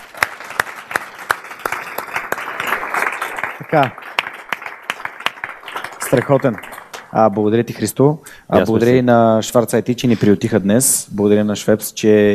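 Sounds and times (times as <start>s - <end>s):
audience applauding: 0.0s - 7.6s
speech: 3.7s - 4.0s, 6.1s - 12.3s.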